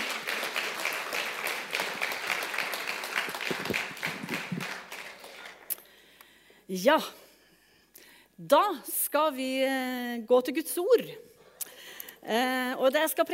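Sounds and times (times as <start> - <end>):
audience applause: 0.0 - 5.7
speech: 6.7 - 7.2, 8.4 - 11.3, 12.2 - 13.3.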